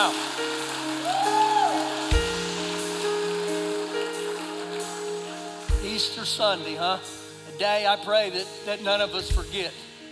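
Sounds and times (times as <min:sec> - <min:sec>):
crowd clapping: 0:00.0 - 0:06.2
speech: 0:06.0 - 0:09.8.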